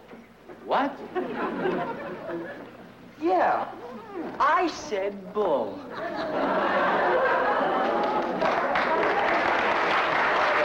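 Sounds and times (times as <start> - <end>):
speech: 0.7 - 6.8
laughter: 1.1 - 2.9, 5.9 - 9.7
live audience applauding: 7.1 - 10.6.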